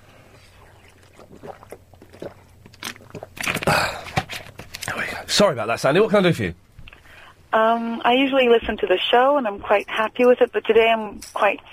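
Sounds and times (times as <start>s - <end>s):
person drinking water: 0.0s - 5.3s
speech: 5.4s - 6.6s, 7.5s - 11.7s.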